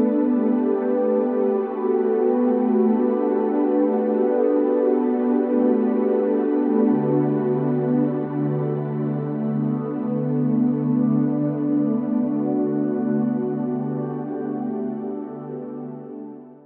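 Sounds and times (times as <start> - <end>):
deep relaxation soundscape: 0.0 - 16.6.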